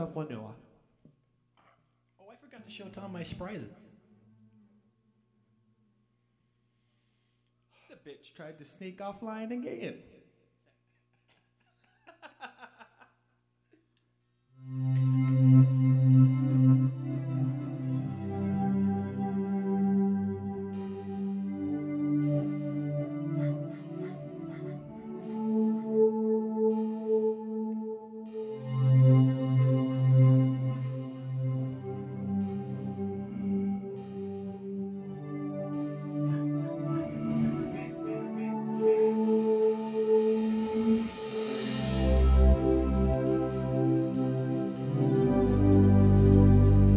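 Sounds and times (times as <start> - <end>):
laughter: 11.7 - 13.2
jam music: 14.6 - 46.9.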